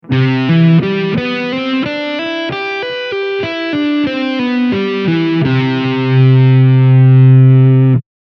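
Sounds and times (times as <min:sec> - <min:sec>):
guitar playing C major ninth chord: 0:00.0 - 0:08.0.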